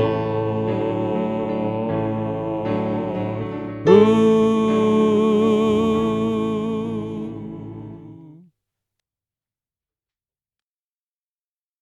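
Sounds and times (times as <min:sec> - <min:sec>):
soprano voice: 0:00.0 - 0:08.5.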